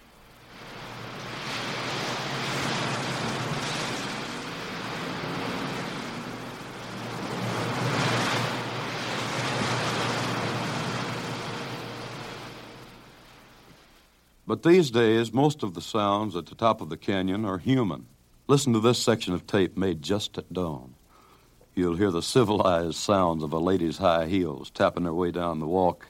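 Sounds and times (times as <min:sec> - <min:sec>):
constant wind whipping scrubby pine trees on the canyon edge: 0:00.0 - 0:14.4
speech: 0:14.5 - 0:21.0, 0:21.8 - 0:26.0.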